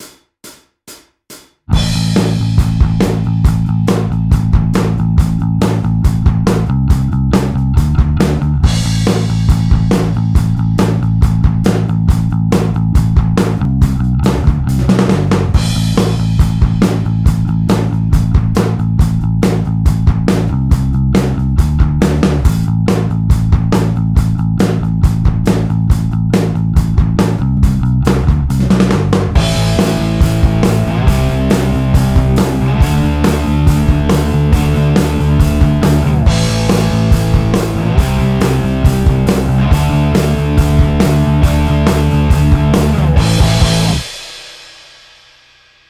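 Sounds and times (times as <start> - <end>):
rock backing track: 0.0 - 44.9.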